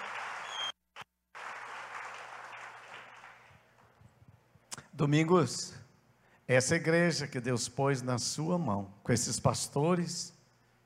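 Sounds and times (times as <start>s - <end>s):
applause: 0.0s - 4.0s
speech: 5.0s - 5.8s, 6.5s - 10.4s.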